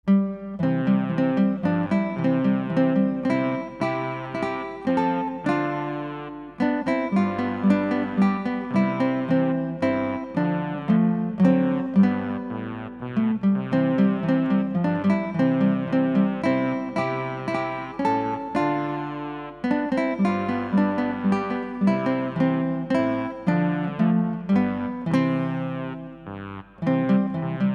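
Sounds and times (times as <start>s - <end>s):
beginner guitar trio: 0.1s - 27.7s.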